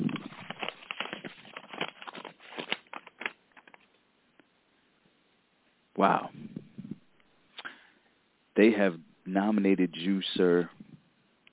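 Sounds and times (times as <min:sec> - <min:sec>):
paper rustling and crinkling as an award envelope is opened: 0:00.0 - 0:04.0
speech: 0:06.0 - 0:06.5, 0:08.6 - 0:10.8.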